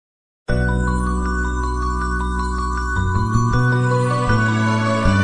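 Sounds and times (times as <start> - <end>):
famous Marathi ringtone: 0.5 - 5.1.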